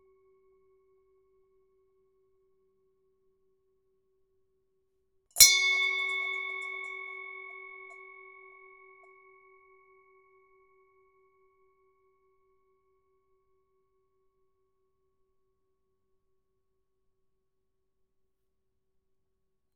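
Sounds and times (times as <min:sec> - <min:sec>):
bell: 0:05.4 - 0:09.8.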